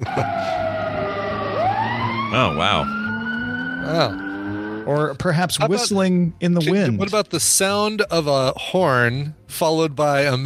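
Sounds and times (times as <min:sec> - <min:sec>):
sirens: 0:00.0 - 0:04.9
speech: 0:02.4 - 0:03.0, 0:03.8 - 0:04.2, 0:04.8 - 0:10.4.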